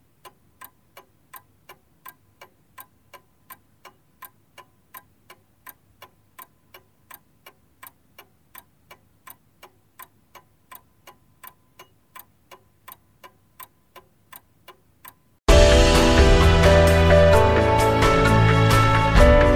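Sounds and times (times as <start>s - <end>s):
clock ticking: 0.0s - 15.4s
loud dense wash of sound with sustained tones: 15.5s - 19.5s.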